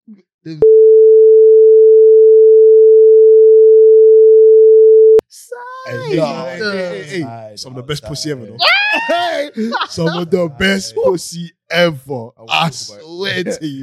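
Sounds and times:
speech: 0.1s - 1.4s, 6.1s - 13.8s
censor beep: 0.6s - 5.2s
laughter: 8.6s - 11.1s.

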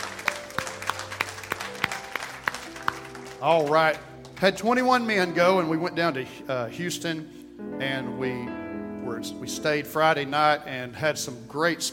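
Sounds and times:
audience clapping: 0.0s - 5.2s
speech: 3.4s - 11.9s.

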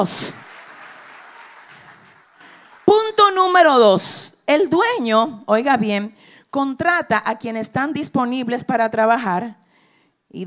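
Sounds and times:
speech: 0.0s - 0.4s, 2.9s - 9.6s
crowd clapping: 0.0s - 3.6s.

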